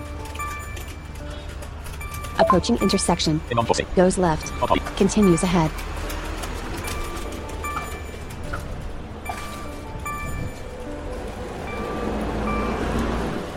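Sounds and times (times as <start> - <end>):
buses passing: 0.0 - 13.5
speech: 2.4 - 6.0.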